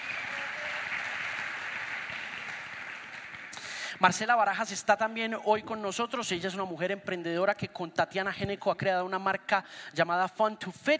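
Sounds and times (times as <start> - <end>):
crowd applause: 0.0 - 4.0
speech: 4.0 - 10.9.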